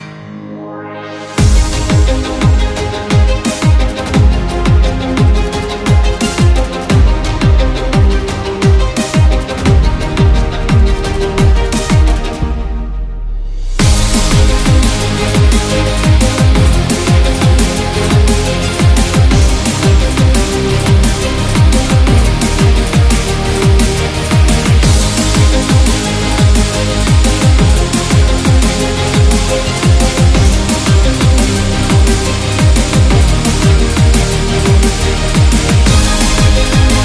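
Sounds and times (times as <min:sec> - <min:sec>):
epic dubstep music: 0:00.0 - 0:37.0.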